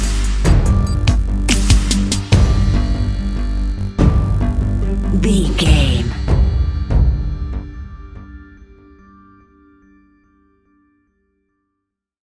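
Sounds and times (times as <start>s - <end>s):
dramatic decision countdown music: 0.2s - 8.4s.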